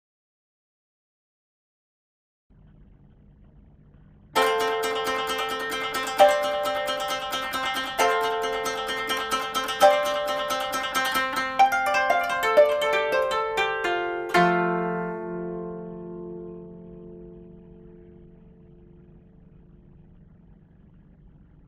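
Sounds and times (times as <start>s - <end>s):
koto: 4.4s - 19.6s.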